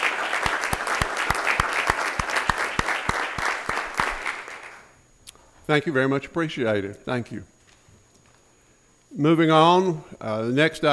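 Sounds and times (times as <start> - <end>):
room full of people applauding: 0.0 - 5.0
speech: 5.7 - 7.5, 9.2 - 10.9.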